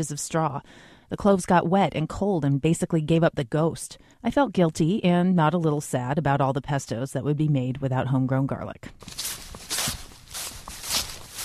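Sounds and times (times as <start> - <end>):
speech: 0.0 - 9.2
footsteps of two people walking through a yard: 9.0 - 11.4.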